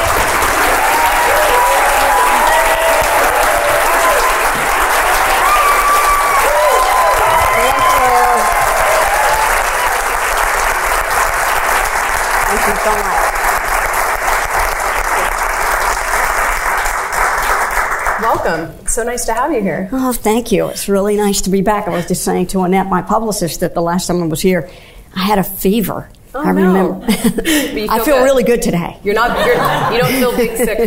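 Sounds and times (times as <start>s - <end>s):
audience applause welcoming guest Holly Hunter: 0.0s - 18.3s
speech: 18.4s - 30.8s
laughter: 27.0s - 27.8s, 29.1s - 30.8s.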